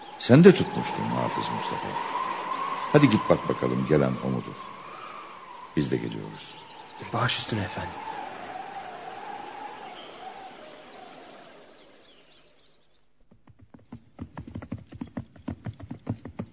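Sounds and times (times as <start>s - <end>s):
speech: 0.2s - 2.3s, 2.9s - 4.8s, 5.8s - 8.1s
horse hooves of an approaching rider: 13.2s - 16.5s.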